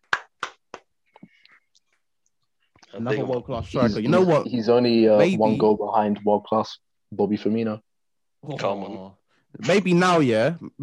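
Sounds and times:
hand clap: 0.0s - 0.9s
speech: 3.0s - 10.8s.

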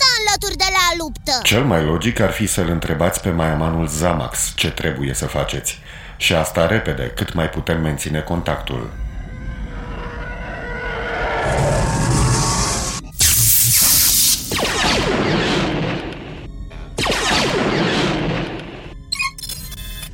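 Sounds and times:
speech: 0.4s - 9.1s
spacecraft rumbling drone in an audio drama: 8.0s - 17.0s
enemy fire booming crackling impacts hitting a spacecraft: 8.9s - 19.1s.

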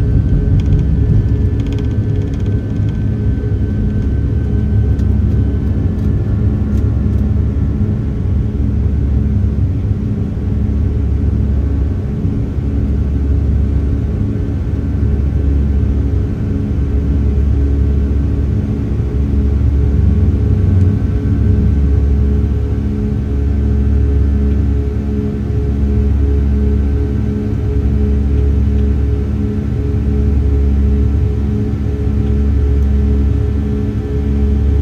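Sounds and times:
jet engine drone inside a Boeing 757 cabin: 0.0s - 34.8s
light clicks and rattles: 0.4s - 3.2s.

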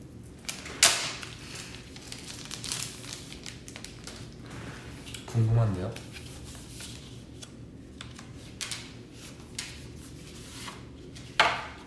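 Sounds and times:
plastic wrapping on a music album CD tearing open: 0.4s - 4.5s
soft scattered crinkling rustles of plastic wrapping: 0.4s - 6.1s
speech: 5.4s - 6.2s.

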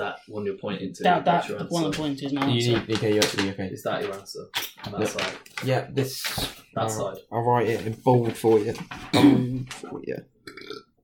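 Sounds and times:
speech: 0.1s - 10.8s
burp: 9.1s - 9.6s, 10.4s - 11.0s.

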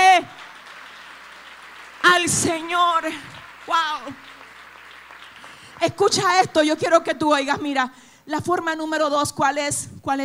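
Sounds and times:
audience applause: 0.0s - 6.3s
speech: 2.3s - 4.4s, 5.8s - 10.2s.

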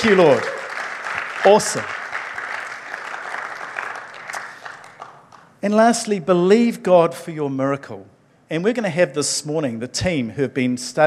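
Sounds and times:
speech: 0.0s - 0.5s, 1.4s - 2.0s, 5.6s - 11.0s
audience applause: 0.0s - 5.4s.

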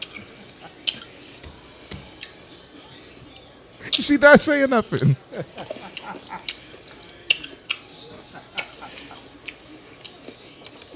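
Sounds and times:
chewing and lip smacking while eating: 0.0s - 1.2s, 5.6s - 10.9s
laughter: 0.2s - 1.0s, 3.8s - 7.3s, 7.9s - 10.0s
speech: 4.0s - 6.5s.

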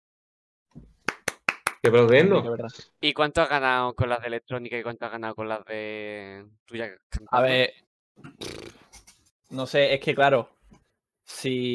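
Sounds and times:
hand claps: 0.8s - 2.2s
speech: 1.8s - 8.5s, 9.5s - 10.6s, 11.3s - 11.7s.

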